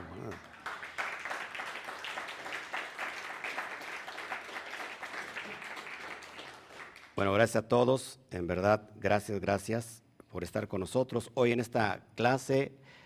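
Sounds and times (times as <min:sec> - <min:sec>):
crowd applause: 0:00.0 - 0:07.1
speech: 0:07.2 - 0:12.8.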